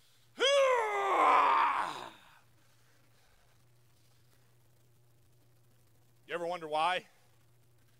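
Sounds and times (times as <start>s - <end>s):
person groaning with physical effort: 0.4s - 2.3s
speech: 6.6s - 7.2s.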